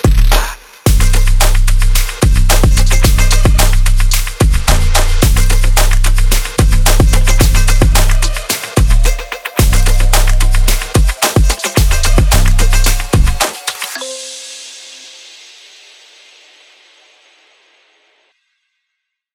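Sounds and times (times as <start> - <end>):
dynamic impulse: 0.1 - 16.1.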